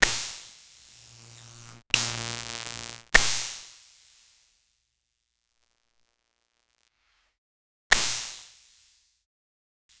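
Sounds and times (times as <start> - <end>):
short electric spark: 0.9 - 3.4.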